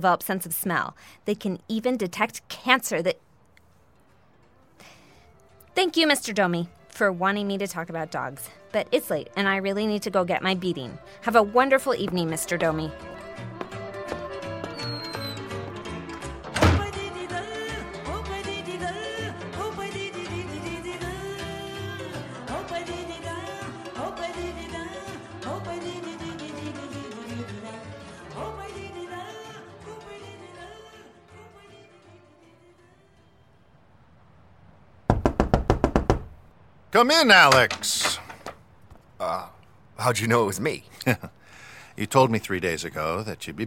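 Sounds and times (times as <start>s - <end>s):
speech: 0.0s - 3.2s, 5.8s - 13.6s, 37.0s - 38.2s, 39.3s - 41.4s, 42.0s - 43.6s
music playing: 5.3s - 33.2s
rapid frantic knocking on a door: 35.1s - 36.4s
laughter: 41.0s - 41.4s.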